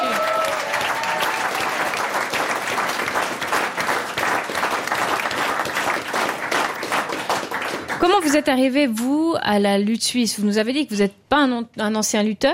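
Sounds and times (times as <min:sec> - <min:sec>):
audience applause: 0:00.0 - 0:08.4
speech: 0:08.0 - 0:12.5.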